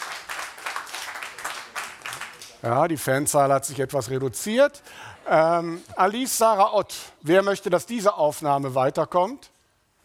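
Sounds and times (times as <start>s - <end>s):
audience applause: 0.0s - 2.6s
speech: 2.6s - 9.5s.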